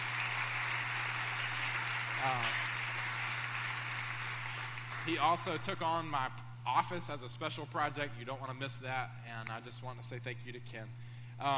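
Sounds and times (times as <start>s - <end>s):
audience applause: 0.0s - 5.6s
speech: 2.2s - 2.7s, 5.0s - 11.5s.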